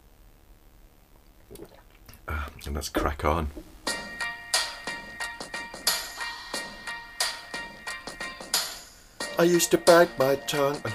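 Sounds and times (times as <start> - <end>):
sipping tea: 1.4 - 2.7
speech: 1.5 - 3.7, 9.4 - 10.9.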